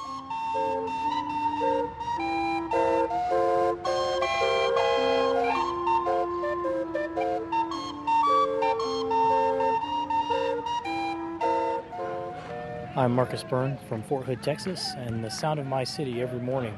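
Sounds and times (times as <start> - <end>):
steam calliope on the riverboat Natchez in New Orleans: 0.0 - 13.4
speech: 13.0 - 16.7.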